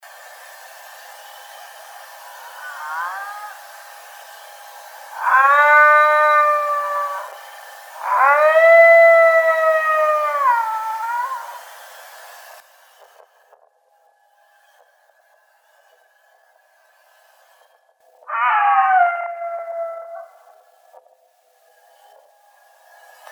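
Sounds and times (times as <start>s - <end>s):
howl in Illinois: 2.2s - 3.8s, 5.1s - 7.4s, 8.0s - 11.7s, 18.2s - 20.7s.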